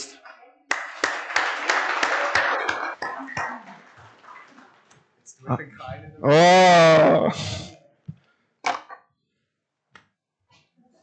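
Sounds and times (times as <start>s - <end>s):
audience clapping applause: 0.7s - 4.8s
speech: 5.4s - 7.7s.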